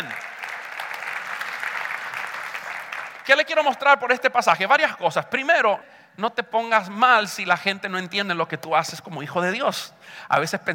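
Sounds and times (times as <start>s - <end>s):
audience applause: 0.0s - 3.5s
speech: 3.3s - 10.7s.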